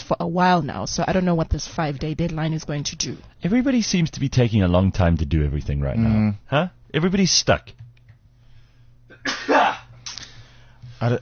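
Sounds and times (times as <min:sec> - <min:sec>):
speech: 0:00.1 - 0:07.8, 0:11.0 - 0:11.2
sneeze: 0:09.2 - 0:09.9.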